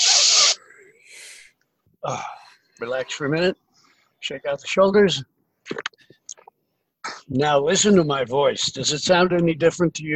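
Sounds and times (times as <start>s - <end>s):
forced breath hissing through teeth mouth and nose during a voice exercise: 0.0s - 1.6s
speech: 2.0s - 3.6s, 4.2s - 6.0s, 7.3s - 10.1s.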